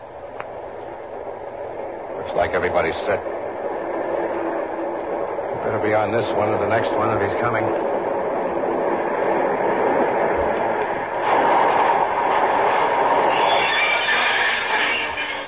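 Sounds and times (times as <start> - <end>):
local train arriving at station: 0.0 - 15.4
speech: 2.3 - 3.4, 5.7 - 8.0
faint higher squeals: 11.3 - 15.4.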